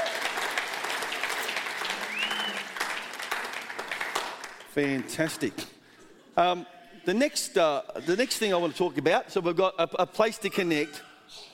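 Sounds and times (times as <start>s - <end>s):
audience applauding: 0.0s - 4.7s
speech: 4.8s - 5.7s, 6.4s - 11.5s.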